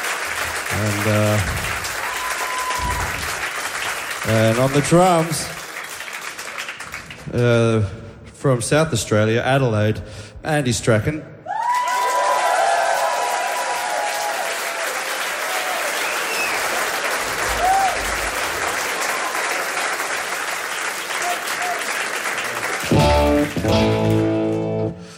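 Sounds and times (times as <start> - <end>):
audience applause and cheering: 0.0 - 7.5, 11.5 - 25.1
speech: 0.8 - 1.7, 4.2 - 5.6, 7.3 - 11.3.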